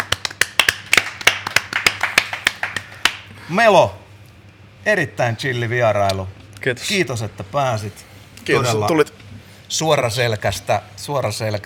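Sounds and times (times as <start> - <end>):
few people clapping: 0.0 - 3.4
speech: 3.5 - 4.0, 4.8 - 11.6.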